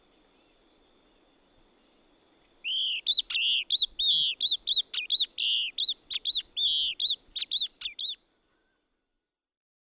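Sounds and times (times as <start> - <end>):
yellow-bellied elaenia Elaenia flavogaster calling: 2.6 - 8.8.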